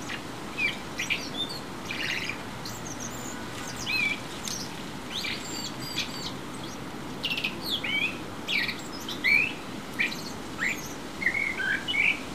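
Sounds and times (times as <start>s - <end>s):
common blackbird Turdus merula giving short sweeping call notes: 0.1s - 12.2s.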